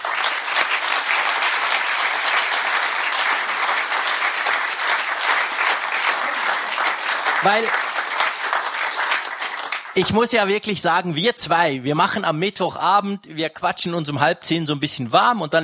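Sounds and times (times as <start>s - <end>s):
audience applause: 0.0s - 10.1s
speech: 7.4s - 7.8s, 10.0s - 15.6s.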